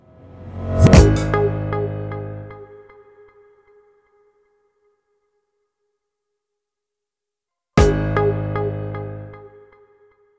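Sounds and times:
logo beat music: 0:00.8 - 0:01.8, 0:07.8 - 0:08.4.

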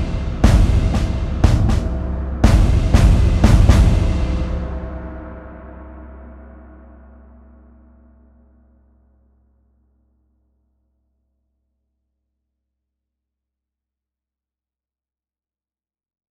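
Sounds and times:
warfare drums: 0:00.0 - 0:05.4.

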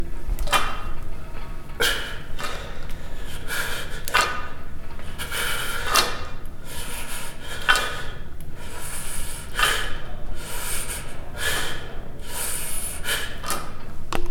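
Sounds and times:
gym sounds: 0:00.0 - 0:14.2.

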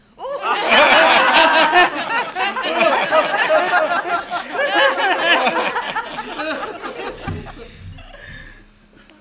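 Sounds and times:
audience laugh track: 0:00.2 - 0:08.7.

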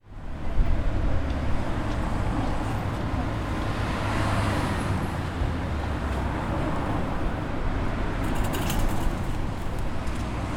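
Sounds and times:
traffic: 0:00.0 - 0:10.5.

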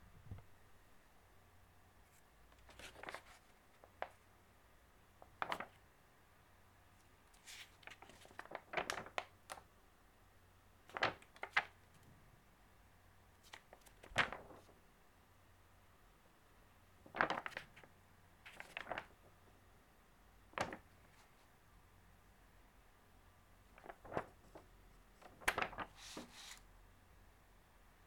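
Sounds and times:
newspaper pages turning: 0:02.6 - 0:04.2, 0:05.3 - 0:05.8, 0:07.3 - 0:09.6, 0:10.8 - 0:11.8, 0:13.5 - 0:14.7, 0:17.0 - 0:17.9, 0:18.5 - 0:19.3, 0:23.7 - 0:24.6, 0:25.2 - 0:26.6.

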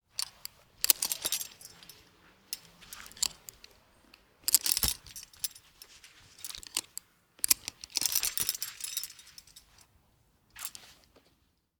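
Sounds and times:
carabiner attaching to harness: 0:00.1 - 0:09.9, 0:10.5 - 0:11.1.

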